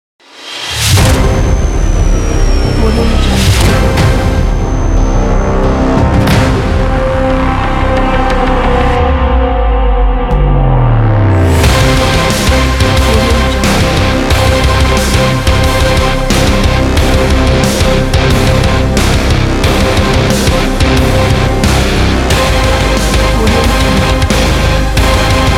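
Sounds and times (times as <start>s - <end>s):
epic trailer metal rock music: 0.4s - 25.5s.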